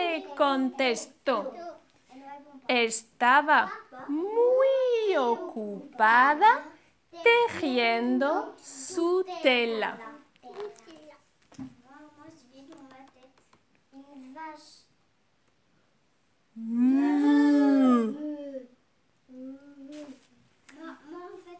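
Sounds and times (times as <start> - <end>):
speech: 0.4 - 1.7, 2.7 - 10.7, 16.6 - 18.7
person imitating a cow moo: 16.6 - 18.4.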